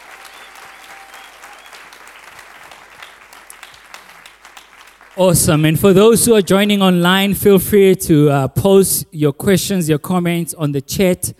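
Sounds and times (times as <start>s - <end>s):
audience applause: 0.0s - 7.0s
speech: 5.2s - 11.3s.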